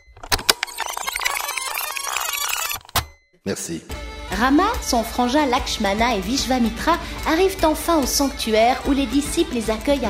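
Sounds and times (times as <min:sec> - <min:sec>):
fast-forward playback sound effect: 0:00.0 - 0:03.0
speech: 0:03.5 - 0:10.0.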